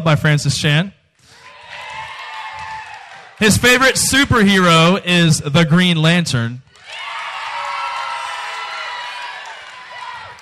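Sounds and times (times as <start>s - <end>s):
speech: 0.0s - 1.0s, 3.4s - 6.7s
audience clapping: 1.2s - 4.0s, 6.7s - 10.3s.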